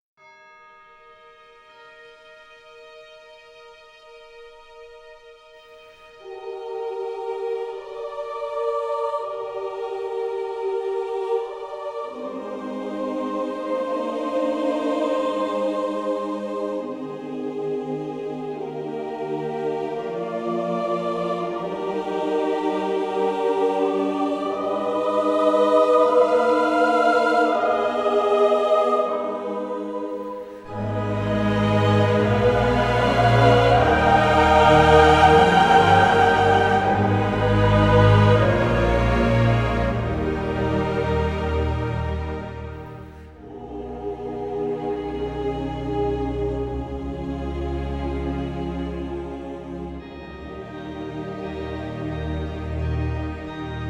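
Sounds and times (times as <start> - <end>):
choir singing: 5.1 - 53.8.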